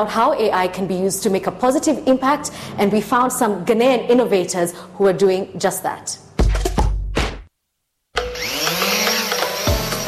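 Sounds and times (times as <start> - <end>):
speech: 0.0 - 6.2
drone taking off with spinning rotors buzzing: 8.2 - 10.0.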